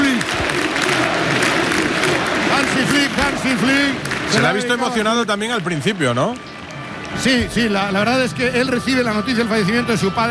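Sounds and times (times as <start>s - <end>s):
large crowd applause in stadium: 0.0s - 10.2s
speech: 3.5s - 6.5s, 7.1s - 10.2s.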